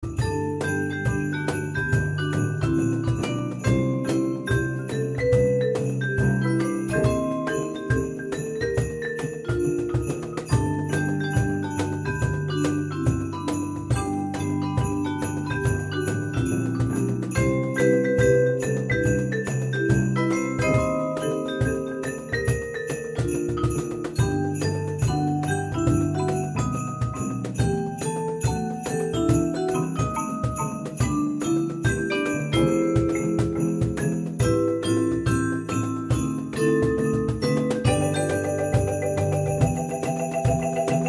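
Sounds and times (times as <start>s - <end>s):
marimba: 0.0s - 41.0s.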